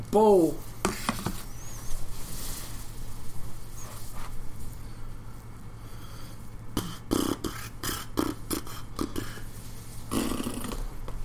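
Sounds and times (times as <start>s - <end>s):
speech: 0.1s - 0.7s
person farting into the microphone: 6.8s - 9.5s, 10.1s - 11.1s.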